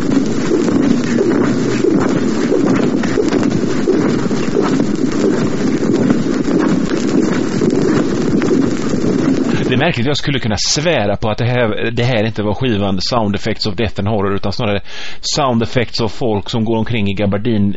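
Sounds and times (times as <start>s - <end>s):
Dracula flying sound effect rustling flap: 0.0s - 10.0s
speech: 9.8s - 17.7s.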